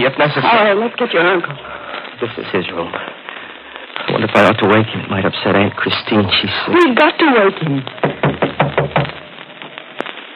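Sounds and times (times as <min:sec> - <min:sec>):
speech: 0:00.0 - 0:03.1, 0:04.2 - 0:08.1
knocking on a door: 0:08.0 - 0:09.2.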